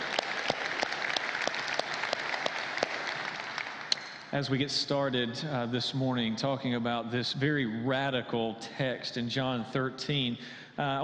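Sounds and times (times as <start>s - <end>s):
audience clapping in a church: 0.0s - 4.4s
speech: 4.3s - 11.0s.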